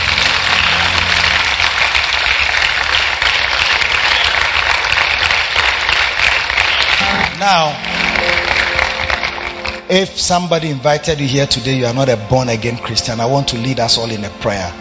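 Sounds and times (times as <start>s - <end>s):
low rumbling hum: 0.0s - 2.2s
audience clapping: 0.0s - 10.8s
speech: 7.4s - 8.0s, 9.9s - 14.8s.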